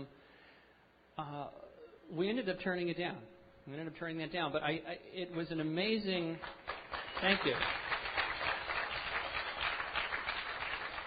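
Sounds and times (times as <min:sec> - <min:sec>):
speech: 0:01.2 - 0:07.8
audience clapping: 0:06.4 - 0:11.0.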